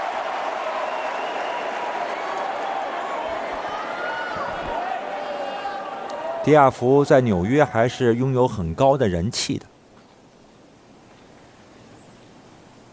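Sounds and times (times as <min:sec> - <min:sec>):
large stadium crowd applauding and cheering: 0:00.0 - 0:06.5
speech: 0:06.4 - 0:09.7.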